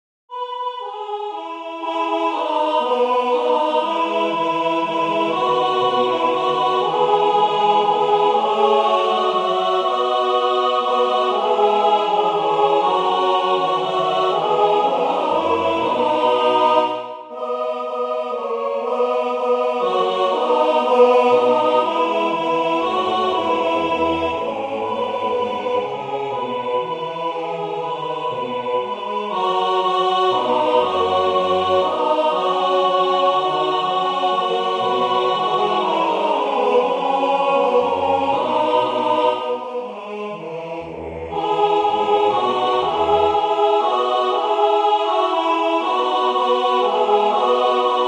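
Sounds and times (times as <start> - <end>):
alto choir singing: 0.3 - 48.0.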